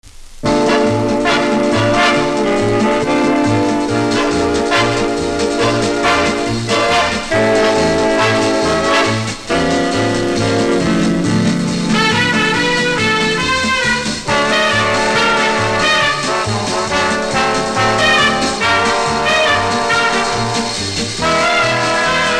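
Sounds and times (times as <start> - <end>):
orchestra: 0.4 - 22.3.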